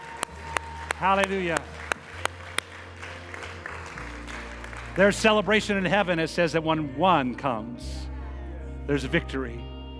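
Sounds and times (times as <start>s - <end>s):
audience applause: 0.0s - 5.5s
speech: 1.0s - 1.8s, 5.0s - 8.0s, 8.8s - 9.7s.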